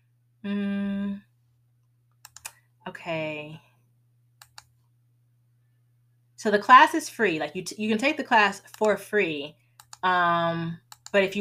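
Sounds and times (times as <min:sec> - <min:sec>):
low steady hum: 0:00.0 - 0:11.3
speech: 0:00.4 - 0:00.9, 0:03.0 - 0:03.7, 0:06.4 - 0:11.3
computer mouse clicks selecting a course link on a website: 0:02.1 - 0:02.6, 0:04.4 - 0:04.8, 0:08.7 - 0:09.0, 0:09.8 - 0:10.0, 0:10.8 - 0:11.2.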